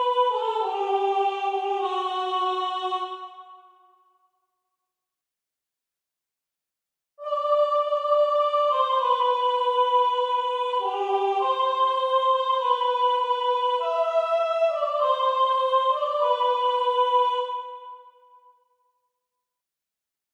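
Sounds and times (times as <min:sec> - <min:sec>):
soprano singing: 0:00.0 - 0:03.6, 0:07.2 - 0:18.0.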